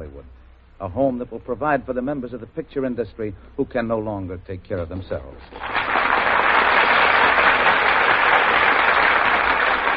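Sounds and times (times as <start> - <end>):
speech: 0.0 - 6.0
audience applause as stars enter stage: 5.6 - 9.9.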